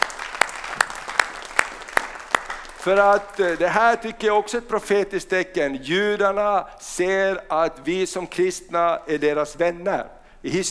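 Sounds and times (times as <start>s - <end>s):
audience applause: 0.0s - 4.0s
sharp rhythmic claps: 0.0s - 4.9s
speech: 2.8s - 10.6s.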